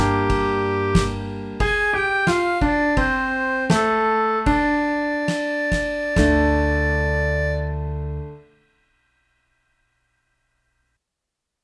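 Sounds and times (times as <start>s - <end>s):
minor mood music: 0.0s - 8.5s.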